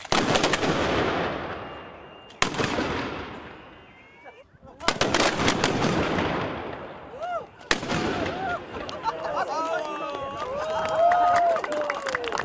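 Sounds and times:
ceremonial gun salute cannon blasts: 0:00.0 - 0:03.7, 0:04.8 - 0:07.1, 0:07.7 - 0:08.4
laughter: 0:08.4 - 0:12.3.

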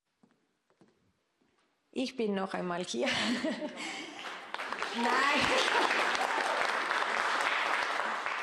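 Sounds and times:
speech: 0:02.0 - 0:04.1, 0:05.0 - 0:06.2
laughter: 0:03.0 - 0:06.7
audience applause: 0:03.8 - 0:08.4.

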